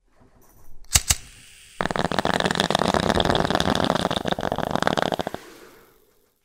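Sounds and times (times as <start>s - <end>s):
bong: 1.8s - 6.0s.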